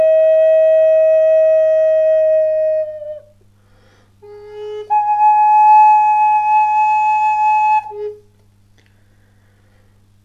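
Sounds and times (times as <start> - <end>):
Amerindian bamboo flute playing: 0.0 - 3.4, 4.2 - 8.4.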